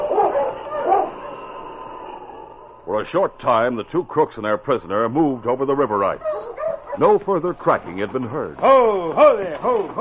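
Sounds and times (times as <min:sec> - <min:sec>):
husky sled dog barking and whimpering: 0:00.0 - 0:01.5, 0:06.2 - 0:07.1
speech: 0:02.9 - 0:10.0.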